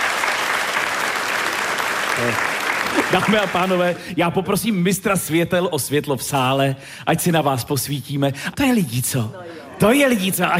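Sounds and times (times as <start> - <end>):
thunderous audience applause: 0.0 - 4.0
speech: 2.2 - 10.5.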